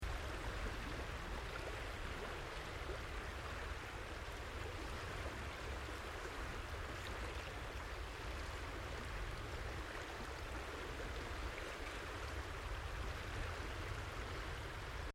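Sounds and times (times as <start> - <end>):
river: 0.0 - 15.1.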